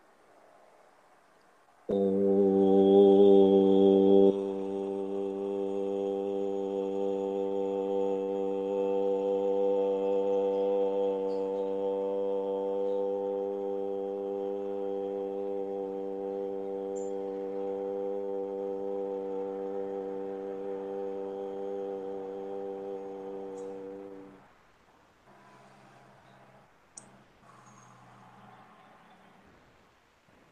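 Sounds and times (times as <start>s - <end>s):
group chanting om: 1.9s - 24.5s.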